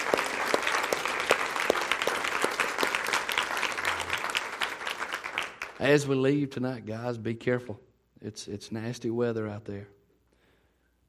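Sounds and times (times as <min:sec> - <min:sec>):
audience applause: 0:00.0 - 0:06.1
speech: 0:05.8 - 0:10.0.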